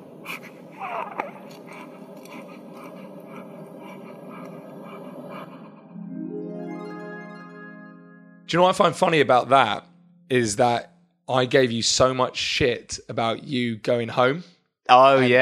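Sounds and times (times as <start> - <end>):
newborn baby breathing: 0.2 - 5.9
speech: 8.5 - 15.4.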